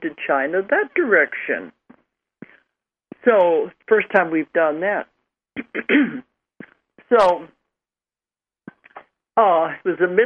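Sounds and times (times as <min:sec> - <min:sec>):
speech: 0:00.1 - 0:01.8, 0:03.2 - 0:06.3, 0:07.1 - 0:07.6, 0:09.4 - 0:10.2
person clearing throat: 0:05.6 - 0:06.3.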